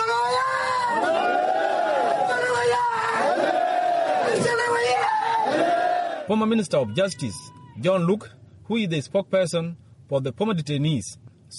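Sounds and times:
crowd of supporters cheering: 0:00.4 - 0:06.3
speech: 0:06.3 - 0:11.5.

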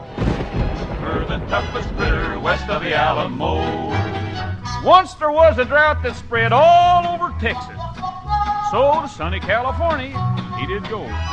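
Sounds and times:
thunder rumbling over the dry land around the Pecos River: 0:00.0 - 0:07.2
speech: 0:01.4 - 0:07.8, 0:08.7 - 0:11.3.

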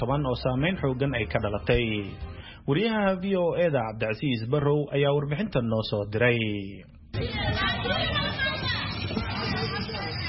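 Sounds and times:
speech: 0:00.0 - 0:08.7
babble of displaced women and children queuing for water in Somalia: 0:07.1 - 0:10.2.

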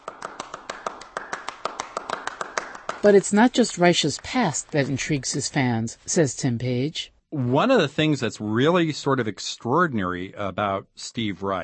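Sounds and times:
hand clapping in a minimalist clapping piece: 0:00.0 - 0:05.6
speech: 0:03.0 - 0:11.6.

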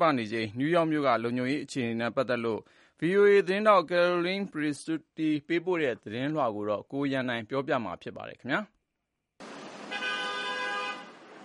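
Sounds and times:
speech: 0:00.0 - 0:08.8
car horn honking in a traffic jam on a New York street: 0:09.8 - 0:11.2.

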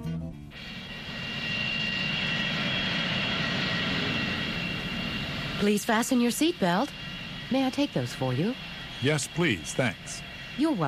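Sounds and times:
airplane engine roaring: 0:00.4 - 0:10.8
speech: 0:05.6 - 0:10.8.

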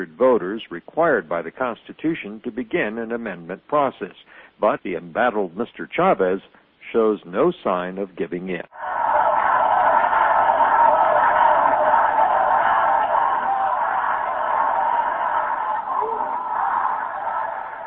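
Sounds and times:
speech: 0:00.0 - 0:09.1
crowd chanting and cheering at rally: 0:08.7 - 0:17.8.

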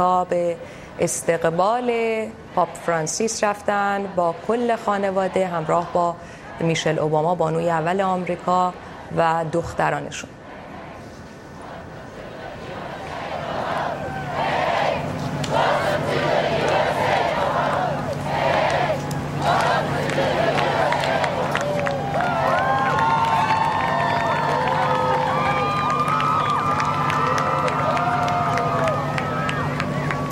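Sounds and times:
speech: 0:00.0 - 0:10.4
crowd cheering welcoming the pope at airport: 0:02.5 - 0:07.2, 0:11.6 - 0:30.3.

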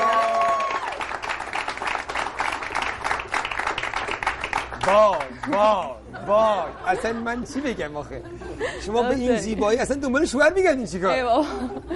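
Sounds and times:
audience applause on a Persian-language entertainment show: 0:00.0 - 0:05.8
speech: 0:04.8 - 0:11.9.

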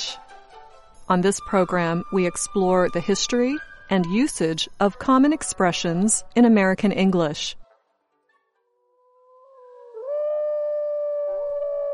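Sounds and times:
speech: 0:01.1 - 0:07.6
wolf howling: 0:08.7 - 0:11.9.

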